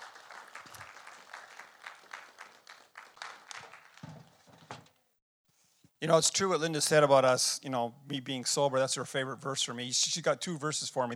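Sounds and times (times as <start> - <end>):
audience applause: 0.0 - 4.9
speech: 6.0 - 11.1.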